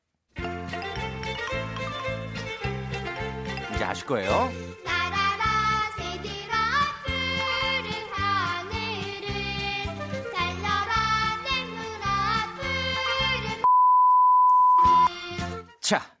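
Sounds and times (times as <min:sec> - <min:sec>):
bouncy sung song with full instrumental backing: 0:00.4 - 0:13.6
speech: 0:03.8 - 0:04.8, 0:15.9 - 0:16.1
steady high-pitched censor beep: 0:13.6 - 0:15.1.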